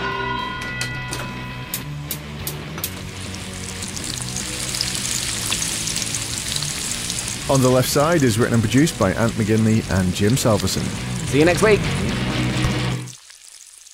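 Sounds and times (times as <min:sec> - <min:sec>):
bacon sizzling in a frying pan: 0:03.0 - 0:13.9
speech: 0:07.5 - 0:12.2.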